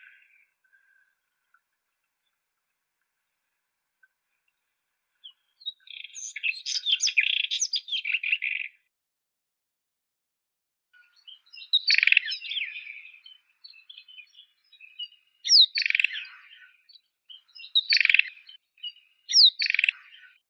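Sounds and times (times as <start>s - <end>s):
white-throated robin Irania gutturalis: 5.2s - 8.8s, 11.0s - 20.4s.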